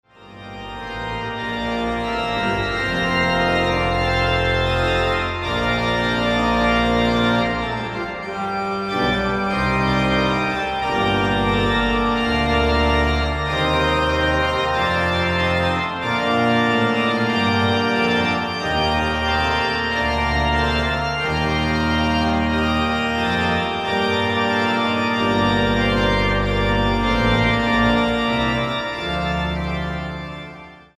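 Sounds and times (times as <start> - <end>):
organ: 0.0 - 30.9.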